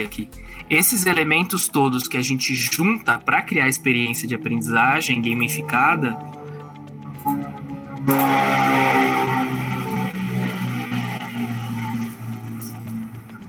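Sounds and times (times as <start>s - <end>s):
speech: 0.0s - 6.4s, 8.0s - 9.0s
airplane flying overhead: 3.8s - 13.4s.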